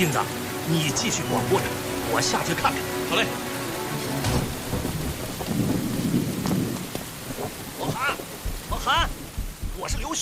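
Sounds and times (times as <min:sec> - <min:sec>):
speech: 0:00.0 - 0:03.5, 0:09.8 - 0:10.2
heavy rain pouring down: 0:00.0 - 0:10.2
deep rolling thunder rumble: 0:04.2 - 0:10.2.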